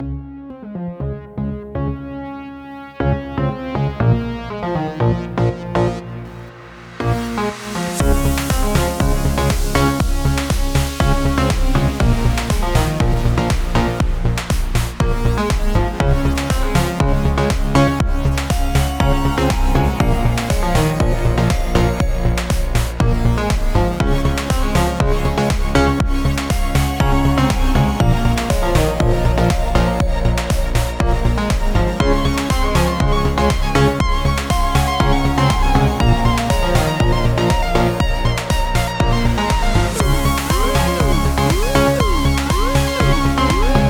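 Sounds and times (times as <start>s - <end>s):
music: 0.0s - 43.8s.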